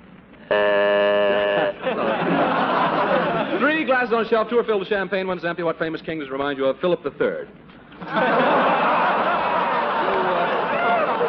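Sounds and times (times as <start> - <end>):
quiz show buzzer: 0.5 - 1.8
laughter: 1.4 - 3.9, 7.9 - 11.2
speech: 4.0 - 8.7.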